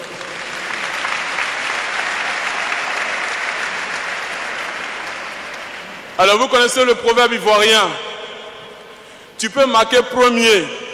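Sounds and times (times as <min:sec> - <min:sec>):
audience applauding: 0:00.0 - 0:06.2
speech: 0:06.2 - 0:08.1, 0:09.4 - 0:10.8.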